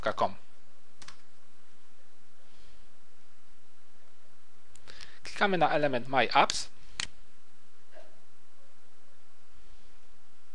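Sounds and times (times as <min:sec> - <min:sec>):
typing a web address on keyboard: 0:01.0 - 0:01.3
speech: 0:05.4 - 0:06.8.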